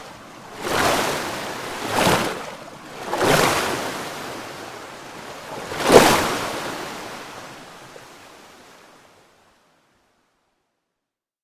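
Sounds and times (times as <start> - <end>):
water rushing: 0.0 - 4.2, 5.4 - 7.4.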